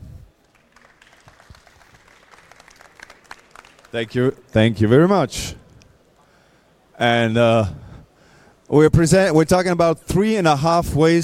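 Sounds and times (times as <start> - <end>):
audience applause: 0.4 - 4.3
speech: 3.9 - 5.6, 7.0 - 7.8, 8.7 - 11.2.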